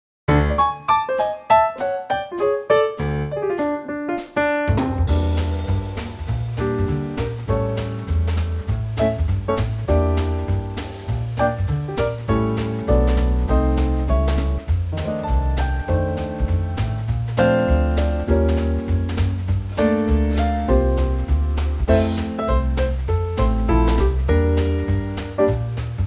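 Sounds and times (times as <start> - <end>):
instrumental trio in F: 0.3 - 26.0.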